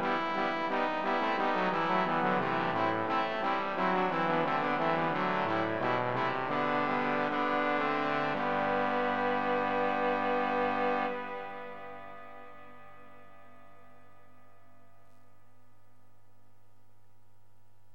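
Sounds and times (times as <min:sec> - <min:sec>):
three trombones playing a canon: 0:00.0 - 0:12.0.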